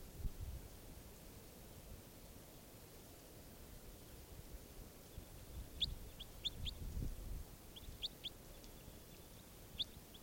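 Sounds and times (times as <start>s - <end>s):
steady low rumble and hiss: 0.0s - 10.2s
bird chirping: 5.0s - 6.9s, 7.6s - 10.2s.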